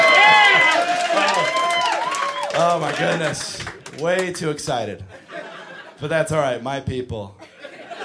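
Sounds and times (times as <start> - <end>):
audience cheering and making noise: 0.0 - 4.3
speech: 2.8 - 5.2, 6.0 - 7.4
laughter: 5.0 - 6.0, 7.4 - 8.0.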